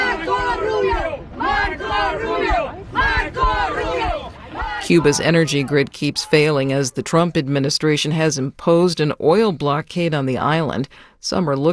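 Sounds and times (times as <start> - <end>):
Cuban Americans in Miami cheering: 0.0 - 6.8
speech: 4.9 - 11.7.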